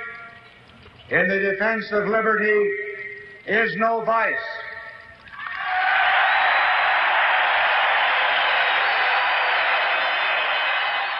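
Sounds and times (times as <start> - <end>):
speech: 1.1 - 4.6
crowd applauding a speech: 5.3 - 11.1.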